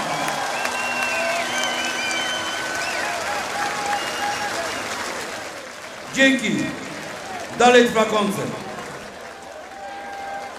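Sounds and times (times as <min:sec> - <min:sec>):
audience applause: 0:00.0 - 0:10.5
crowd noise: 0:00.0 - 0:10.5
whistles: 0:00.5 - 0:05.0
speech: 0:06.2 - 0:06.8, 0:07.6 - 0:08.6.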